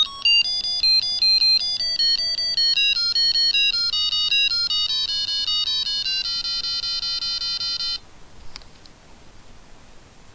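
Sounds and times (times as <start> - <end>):
blues scale played: 0.0 - 8.0.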